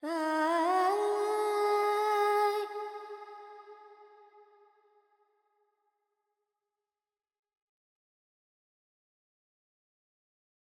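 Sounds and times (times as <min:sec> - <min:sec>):
Carnatic woman singing alaps in Phrygian mode: 0:00.0 - 0:03.4.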